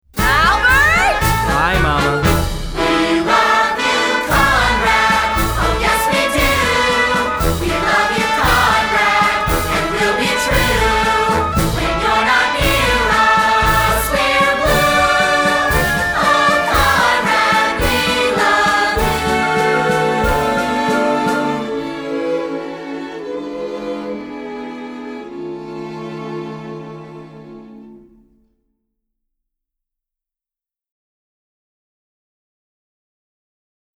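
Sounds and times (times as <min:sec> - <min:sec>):
guide vocal: 0:00.2 - 0:24.2.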